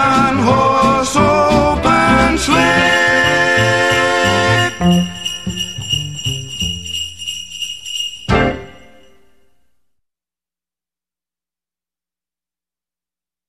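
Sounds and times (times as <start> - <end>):
Christmas song: 0.0 - 9.7.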